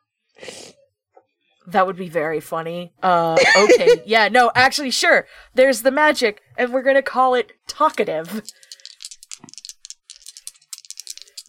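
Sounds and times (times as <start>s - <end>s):
speech: 1.7s - 8.7s
laughter: 3.4s - 4.1s
dice rattling: 7.7s - 11.4s.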